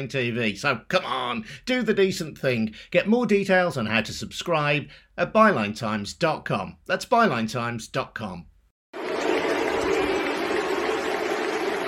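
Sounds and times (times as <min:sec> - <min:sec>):
speech: 0:00.0 - 0:08.5
England football fans cheering: 0:09.0 - 0:11.8.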